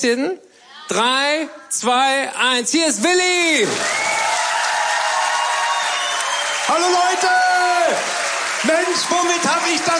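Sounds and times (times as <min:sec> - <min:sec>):
speech: 0:00.0 - 0:04.1, 0:06.7 - 0:09.9
audience applause: 0:03.7 - 0:09.9.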